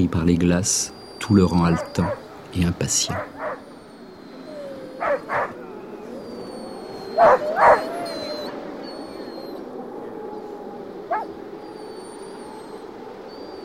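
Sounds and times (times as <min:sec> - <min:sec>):
speech: 0:00.0 - 0:03.4
dogs fighting and barking: 0:01.7 - 0:02.4, 0:03.2 - 0:09.5.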